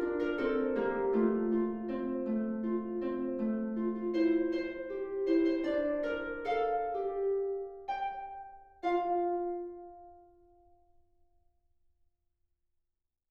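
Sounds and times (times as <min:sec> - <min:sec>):
lap harp: 0:00.0 - 0:10.6.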